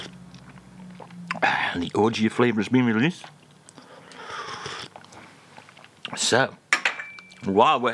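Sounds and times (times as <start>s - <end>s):
person chomping on biscuits: 0.0s - 2.2s, 3.0s - 6.3s
speech: 1.4s - 3.4s, 6.2s - 6.6s, 7.4s - 7.9s.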